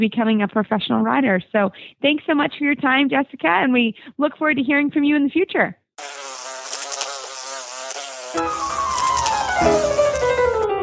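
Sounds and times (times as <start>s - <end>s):
speech: 0.0s - 6.1s
flies buzzing: 6.0s - 10.7s.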